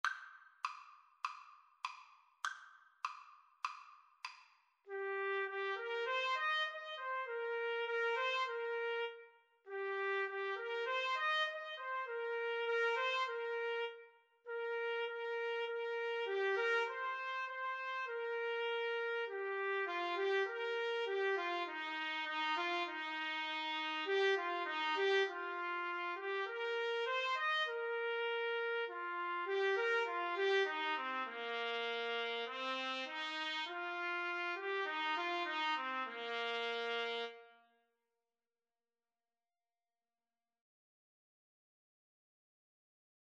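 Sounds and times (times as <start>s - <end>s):
trumpet duet: 4.9s - 37.7s.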